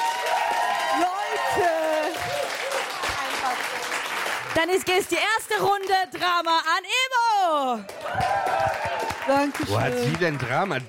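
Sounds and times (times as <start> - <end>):
audience cheering: 0.0 - 3.6, 7.8 - 10.8
audience applause: 0.0 - 6.4, 7.8 - 10.8
speech: 4.6 - 10.8.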